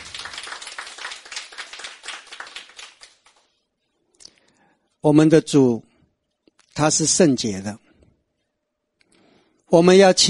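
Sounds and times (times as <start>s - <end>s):
applause: 0.0s - 3.6s
speech: 5.0s - 5.9s, 6.8s - 7.8s, 9.7s - 10.2s.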